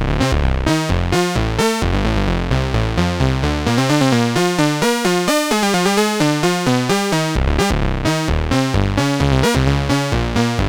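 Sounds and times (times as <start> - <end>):
sequenced synth music on a Polivoks Formanta synthesizer: 0.1 - 2.3, 3.6 - 10.5.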